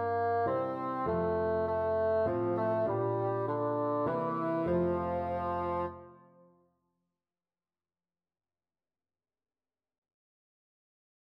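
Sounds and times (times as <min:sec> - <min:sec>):
bassoon: 0:00.0 - 0:06.5.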